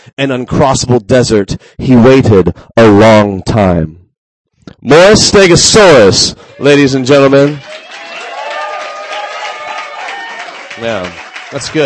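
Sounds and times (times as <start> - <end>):
speech: 0.1 - 4.0, 4.7 - 7.8, 10.8 - 11.8
audience clapping: 6.4 - 11.8.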